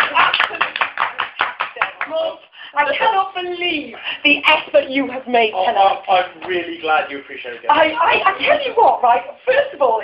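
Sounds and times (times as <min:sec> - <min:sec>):
round of applause: 0:00.0 - 0:02.3
speech: 0:02.2 - 0:10.0.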